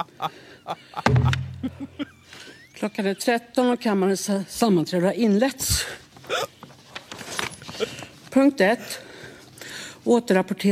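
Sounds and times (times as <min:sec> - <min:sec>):
speech: 0:00.0 - 0:06.0, 0:08.4 - 0:09.1, 0:10.0 - 0:10.7
heavy gavel thudding: 0:01.1 - 0:01.9.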